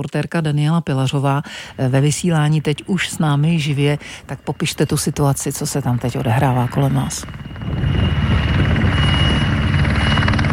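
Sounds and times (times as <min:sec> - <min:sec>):
speech: 0:00.0 - 0:08.1
firefighting helicopters roaring at an airfield: 0:01.2 - 0:10.5.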